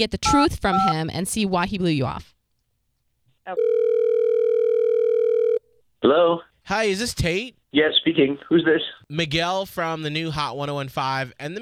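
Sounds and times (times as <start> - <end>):
speech: 0.0 - 2.4, 3.4 - 3.7, 6.0 - 11.6
telephone dial tone: 3.6 - 5.6.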